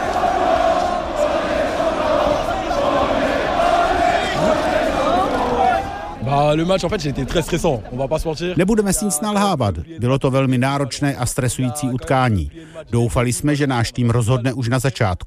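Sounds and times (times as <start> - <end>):
crowd chanting on the Champs-Élysées: 0.0 - 6.3
crowd cheering on the Champs-Élysées: 0.0 - 7.2
speech: 6.5 - 15.2.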